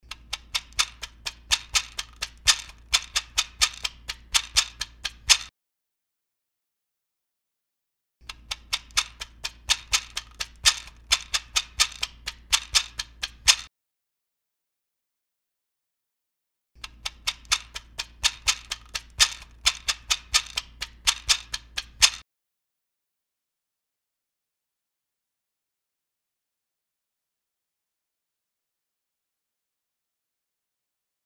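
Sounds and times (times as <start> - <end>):
caracaxa rattle: 0.1 - 5.5, 8.4 - 13.7, 17.0 - 22.2.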